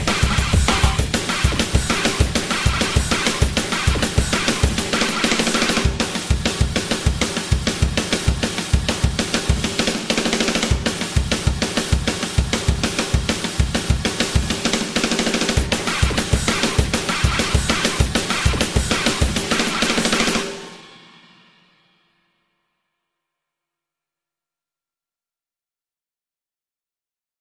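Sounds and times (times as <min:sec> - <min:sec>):
sound effects: 0:00.0 - 0:03.0
drums: 0:00.0 - 0:22.5.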